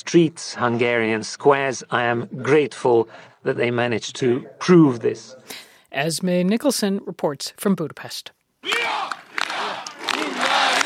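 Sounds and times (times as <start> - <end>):
speech: 0.1 - 8.4
thousands of Hungarian voters cheering at a victory rally in Budapest: 8.6 - 10.8.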